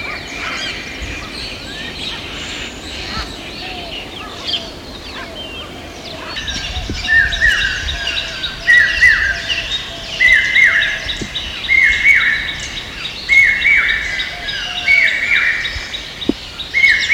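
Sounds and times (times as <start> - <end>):
birds on the Terai in Nepal: 0.0 - 17.1.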